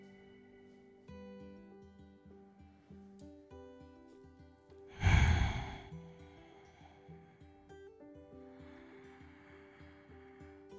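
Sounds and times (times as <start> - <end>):
slow deep exhale during a guided meditation: 4.9 - 7.6, 8.4 - 10.7.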